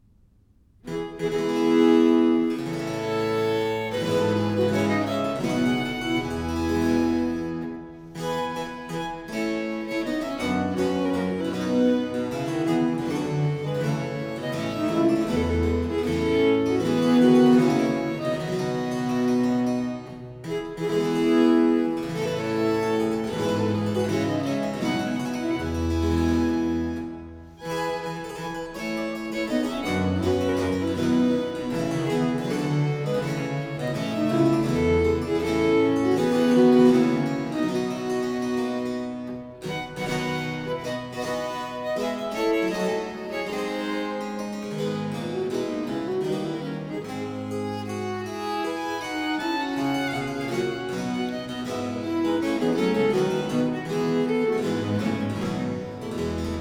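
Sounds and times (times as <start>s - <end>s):
viols playing suite: 0.9s - 56.5s.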